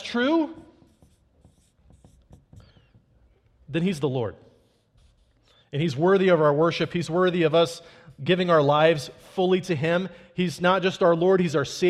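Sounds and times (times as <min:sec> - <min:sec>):
pen writing notes by hand: 0:00.0 - 0:03.2, 0:04.6 - 0:05.6
speech: 0:00.1 - 0:00.7, 0:03.7 - 0:04.4, 0:05.7 - 0:11.8.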